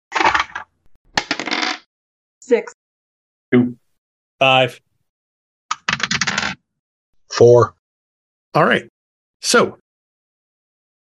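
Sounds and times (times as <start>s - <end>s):
six-sided dice rattling across a hard surface: 0.2s - 1.8s, 5.7s - 6.6s
speech: 2.5s - 2.8s, 3.5s - 3.8s, 4.4s - 4.9s, 7.3s - 7.8s, 8.5s - 9.8s.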